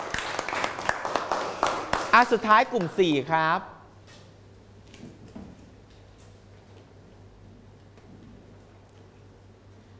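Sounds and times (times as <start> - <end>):
classroom applause for a classmate: 0.0 - 2.9
speech: 2.2 - 3.7.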